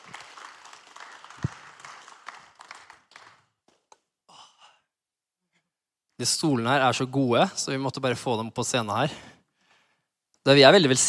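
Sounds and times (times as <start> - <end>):
audience applause: 0.0 - 3.5
speech: 6.2 - 9.3, 10.4 - 11.0.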